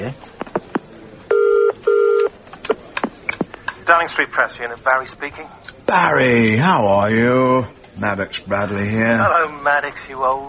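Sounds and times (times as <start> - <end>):
speech: 0.1 - 0.4, 3.9 - 10.4
telephone ringback tone heard down the line: 1.3 - 2.3.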